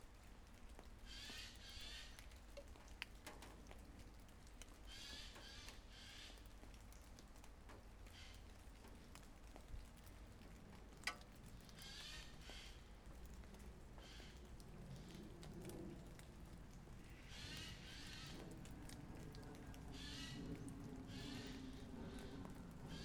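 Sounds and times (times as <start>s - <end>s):
light rain in Draguignan: 0.0s - 23.0s
birds in Draguignan: 1.1s - 2.4s, 4.8s - 6.7s, 11.5s - 15.8s, 17.0s - 23.0s.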